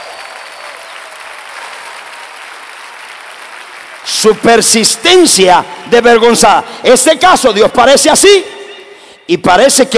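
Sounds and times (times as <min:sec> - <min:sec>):
audience applause: 0:00.0 - 0:04.7
speech: 0:04.1 - 0:08.6, 0:09.3 - 0:09.9.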